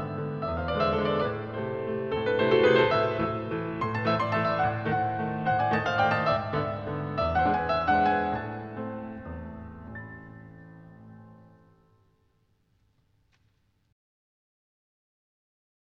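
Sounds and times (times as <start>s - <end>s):
waltz music: 0.0s - 11.8s.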